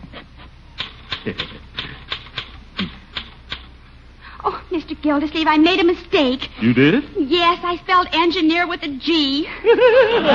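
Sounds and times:
typewriter clacking as a letter is typed: 0.8 - 3.7
speech: 1.2 - 1.5, 4.8 - 10.3
laughter: 1.2 - 2.0, 9.5 - 10.3.

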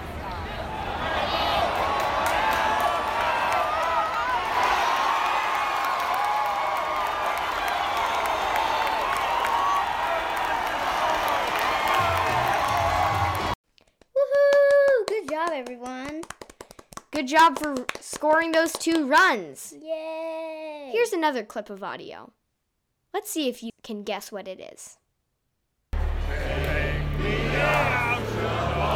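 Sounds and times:
crowd cheering at a baseball game: 0.0 - 13.6, 14.2 - 19.3, 26.0 - 28.9
people clapping: 1.5 - 19.4, 26.4 - 28.9
speech: 17.3 - 19.9, 20.9 - 22.4, 23.1 - 25.0.

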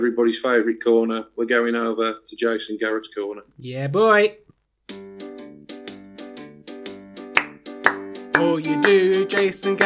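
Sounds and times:
speech: 0.0 - 4.4, 8.4 - 9.8
bouncy plucked instrumental riff: 7.2 - 9.8
hands clapping along: 7.3 - 9.8.

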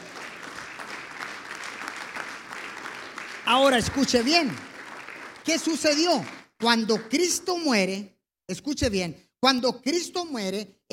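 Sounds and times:
audience applause: 0.0 - 7.3
speech: 3.5 - 4.7, 5.5 - 10.9.

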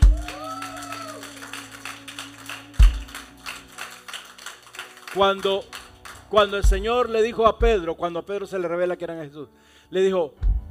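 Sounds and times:
audience applauding: 0.0 - 7.1
speech: 5.2 - 10.4.

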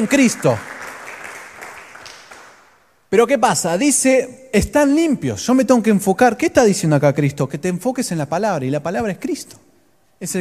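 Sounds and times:
speech: 0.0 - 0.7, 3.1 - 10.3
audience applause: 0.0 - 2.6.

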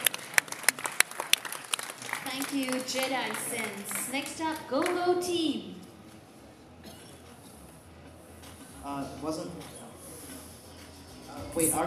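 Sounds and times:
audience applause: 0.0 - 5.0
speech: 2.4 - 5.8, 8.9 - 9.8, 11.6 - 11.8.

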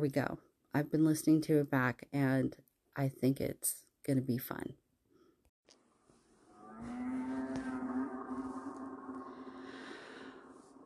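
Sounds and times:
speech: 0.0 - 4.8
whale moaning call: 6.5 - 10.8.

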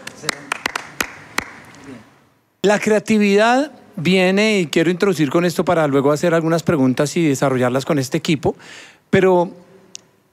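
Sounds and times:
audience applause: 0.0 - 1.9
speech: 0.2 - 0.6, 1.9 - 9.6.

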